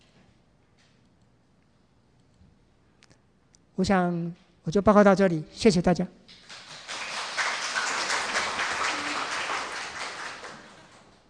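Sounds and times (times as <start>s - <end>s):
speech: 3.8s - 6.4s
audience applause: 6.4s - 11.2s.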